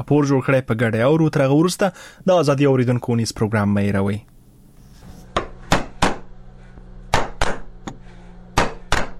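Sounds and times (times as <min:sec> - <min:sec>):
speech: 0:00.0 - 0:04.3
low steady hum: 0:00.0 - 0:09.1
hammer and chisel strikes on wood by a carver in Nuristan, Afghanistan: 0:07.1 - 0:08.0, 0:08.6 - 0:09.1.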